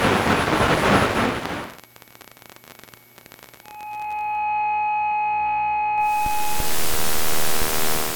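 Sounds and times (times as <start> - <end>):
analog TV static while tuning: 0.0 - 4.2, 6.0 - 8.1
steady high whine: 0.0 - 8.1
faint clicking and buzzing: 1.7 - 4.1, 6.0 - 8.1.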